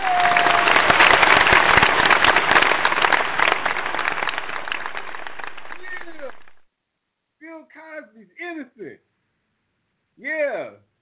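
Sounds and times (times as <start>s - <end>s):
audience applause: 0.0s - 6.7s.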